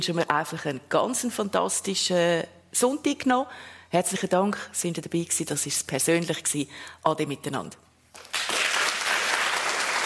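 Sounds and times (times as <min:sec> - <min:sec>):
speech: 0:00.0 - 0:08.5
audience applause: 0:08.2 - 0:10.0.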